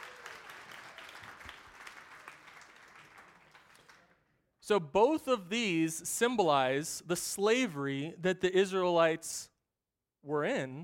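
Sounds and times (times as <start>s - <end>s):
crowd clapping: 0.0s - 4.3s
speech: 4.7s - 9.5s, 10.2s - 10.8s.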